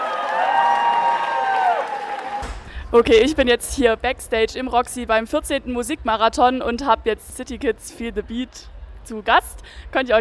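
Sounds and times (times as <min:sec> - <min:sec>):
audience clapping for the hosts of a charity music marathon at the Roxy: 0:00.0 - 0:02.5
speech: 0:02.9 - 0:10.2.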